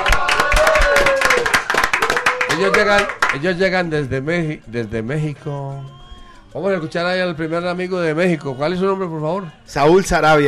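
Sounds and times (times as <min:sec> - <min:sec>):
loud applause in studio: 0:00.0 - 0:03.4
speech: 0:02.6 - 0:10.4.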